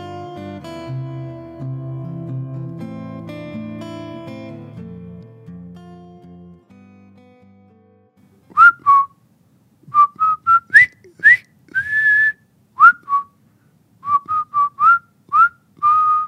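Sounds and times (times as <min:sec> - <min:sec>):
whistled march tune from war film: 0:08.6 - 0:09.1, 0:09.9 - 0:13.3, 0:14.0 - 0:16.2.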